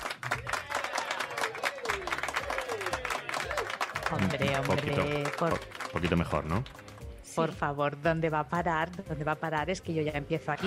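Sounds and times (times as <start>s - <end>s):
group applause: 0.0s - 7.1s
voices cheering and whooping: 0.4s - 3.8s
speech: 4.1s - 6.8s, 7.4s - 10.6s.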